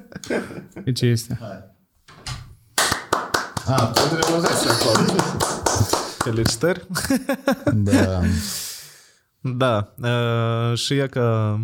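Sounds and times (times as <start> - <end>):
laughter: 0.0 - 0.9, 3.8 - 8.6
speech: 0.3 - 1.8, 3.7 - 8.6, 9.4 - 11.6
hand clapping: 2.8 - 7.0.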